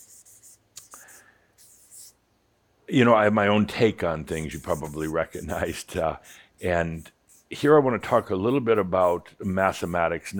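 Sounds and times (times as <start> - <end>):
scratchy writing strokes: 0.0 - 2.2, 4.3 - 10.3
speech: 2.9 - 10.3.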